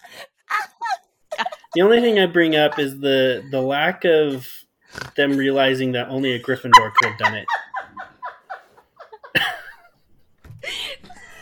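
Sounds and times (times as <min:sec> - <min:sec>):
person laughing in short rhythmic breathy laughs: 0:00.0 - 0:04.4, 0:05.2 - 0:09.9
speech: 0:01.8 - 0:07.6
person snorting: 0:04.9 - 0:05.6.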